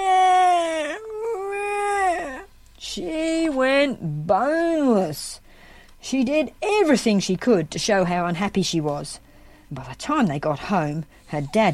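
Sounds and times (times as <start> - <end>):
storyteller imitating a small child bawling: 0.0 - 4.0
speech: 3.0 - 5.4, 6.0 - 11.7.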